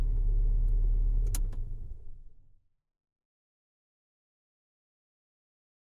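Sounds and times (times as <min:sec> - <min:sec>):
Ford Fiesta 1.1 litre hatchback engine switched on, idling and switched off: 0:00.1 - 0:02.4.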